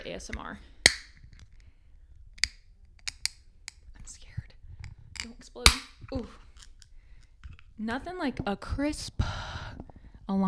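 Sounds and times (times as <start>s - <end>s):
speech: 0.2s - 0.7s, 5.5s - 6.4s, 7.8s - 9.2s, 10.3s - 10.4s
energy drink can being cracked open: 0.9s - 1.6s, 2.4s - 3.8s, 5.2s - 7.7s.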